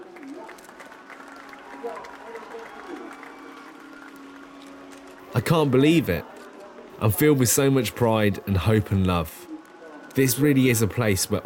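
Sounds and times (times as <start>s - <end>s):
crowd cheering: 0.0s - 11.4s
speech: 1.8s - 2.2s, 5.4s - 6.3s, 7.0s - 9.5s, 10.2s - 11.4s.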